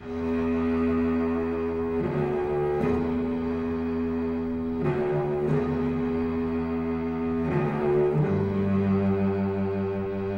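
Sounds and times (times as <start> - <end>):
sad string music loop: 0.0 - 10.3.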